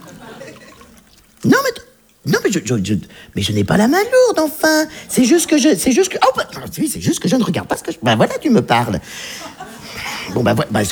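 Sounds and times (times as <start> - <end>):
laughter: 0.0 - 1.2, 8.8 - 10.9
drink pouring into a glass: 0.0 - 2.3
speech: 1.4 - 9.6, 10.3 - 10.9.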